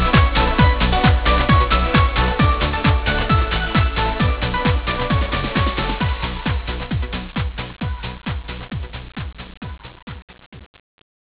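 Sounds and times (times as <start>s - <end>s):
club music: 0.0s - 10.5s.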